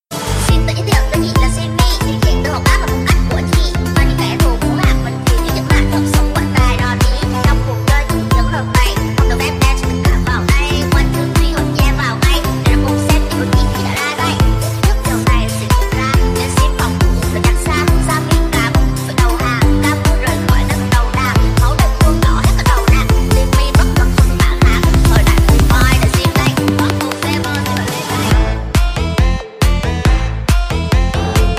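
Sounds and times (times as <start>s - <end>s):
TikTok remix ringtone music: 0.5s - 31.5s.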